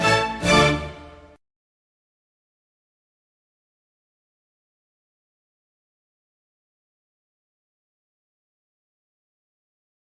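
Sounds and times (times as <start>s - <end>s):
instrumental national anthem: 0.0s - 1.4s.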